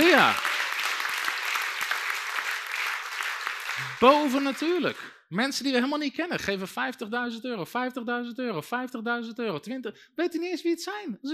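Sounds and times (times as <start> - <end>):
audience applause: 0.0 - 5.1
speech: 0.2 - 0.5, 3.8 - 11.3.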